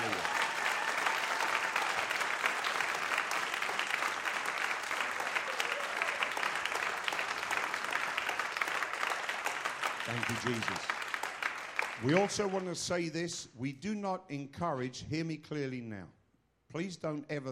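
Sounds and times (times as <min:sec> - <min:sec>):
audience applause: 0:00.0 - 0:12.7
speech: 0:10.1 - 0:11.0, 0:12.0 - 0:17.4.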